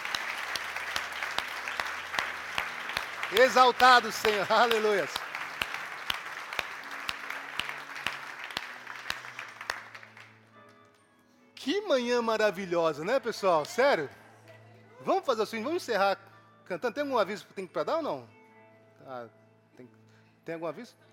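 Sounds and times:
audience applauding: 0.0s - 10.4s
speech: 3.3s - 5.2s, 11.9s - 14.2s, 15.0s - 18.4s, 19.0s - 21.1s.

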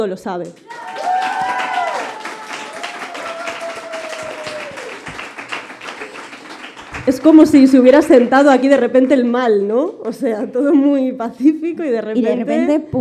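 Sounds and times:
speech: 0.0s - 0.9s, 7.1s - 13.0s
audience applause: 0.6s - 7.7s.

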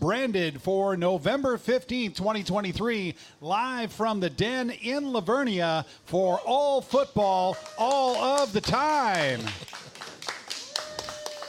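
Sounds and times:
speech: 0.0s - 9.7s
small crowd clapping: 7.4s - 11.4s.

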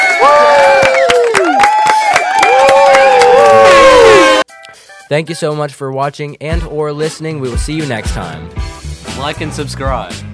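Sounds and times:
crowd cheer sound effect: 0.0s - 4.4s
sharp claps: 0.6s - 3.9s
speech: 5.1s - 10.3s.

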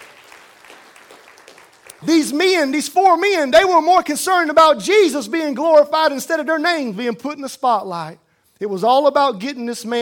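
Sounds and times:
audience hand clapping: 0.0s - 2.2s
speech: 2.0s - 10.0s.

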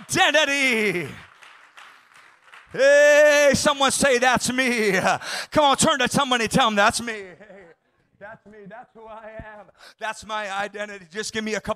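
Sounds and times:
audience hand clapping: 0.0s - 4.6s
speech: 0.1s - 1.3s, 2.7s - 7.6s, 8.2s - 11.7s.

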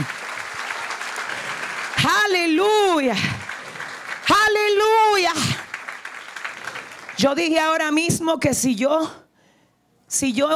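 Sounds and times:
crowd clapping: 0.0s - 8.0s
speech: 2.0s - 3.4s, 7.2s - 9.2s, 10.1s - 10.5s.

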